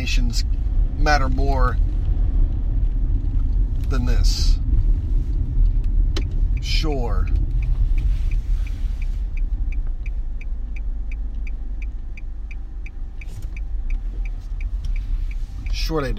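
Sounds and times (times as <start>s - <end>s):
speech: 0.0s - 1.9s, 3.9s - 4.6s, 6.6s - 7.4s, 15.9s - 16.1s
car turn signal clicking: 0.0s - 16.1s.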